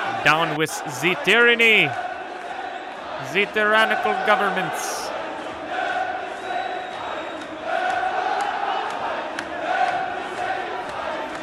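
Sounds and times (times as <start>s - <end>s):
large crowd shouting and chanting at a protest: 0.0s - 11.4s
speech: 0.2s - 2.1s, 3.2s - 5.0s.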